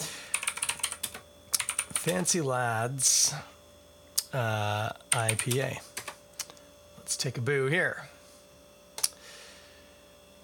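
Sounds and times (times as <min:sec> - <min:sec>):
typing on a computer keyboard: 0:00.3 - 0:02.3, 0:05.1 - 0:06.2
speech: 0:02.0 - 0:03.5, 0:04.3 - 0:05.9, 0:07.1 - 0:08.1.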